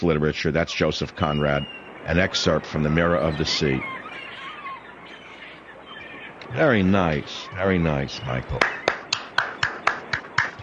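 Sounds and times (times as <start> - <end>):
speech: 0.0 - 4.2, 6.5 - 8.8
person clapping: 8.5 - 10.6.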